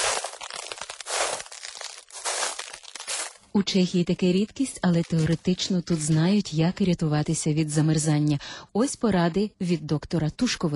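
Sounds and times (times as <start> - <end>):
ice cracking on a frozen river: 0.0 - 3.4
speech: 3.6 - 10.7.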